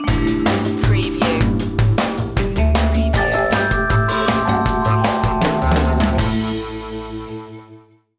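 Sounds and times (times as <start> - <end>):
jazzy opener music: 0.0 - 7.9.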